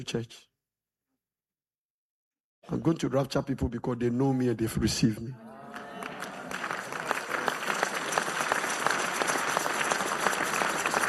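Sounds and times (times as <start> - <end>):
speech: 0.0 - 0.5, 2.7 - 5.5
audience clapping: 5.5 - 11.0.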